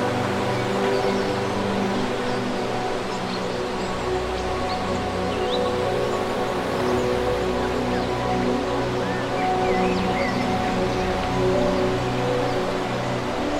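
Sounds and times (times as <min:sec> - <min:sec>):
nature ambience: 0:00.0 - 0:13.5.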